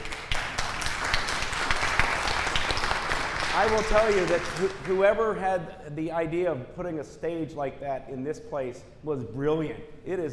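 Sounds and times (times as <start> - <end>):
audience round of applause: 0.0 - 5.0
speech: 3.6 - 10.3.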